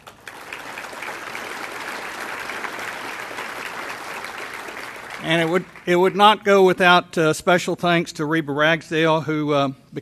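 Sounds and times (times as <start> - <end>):
audience applause: 0.0 - 6.2
speech: 5.2 - 10.0.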